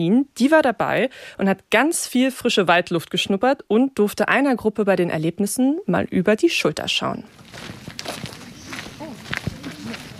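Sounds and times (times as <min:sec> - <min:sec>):
speech: 0:00.0 - 0:08.2
children from a forest school walking through the Niendorfer Gehege woodland: 0:07.2 - 0:10.1.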